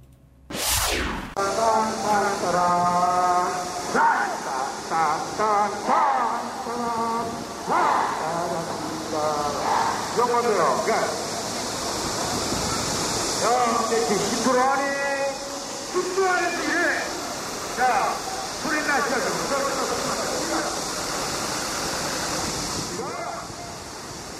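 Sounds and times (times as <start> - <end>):
many voices chanting at rehearsals for a national celebration: 1.4 - 11.4
constant bright hiss: 1.4 - 24.3.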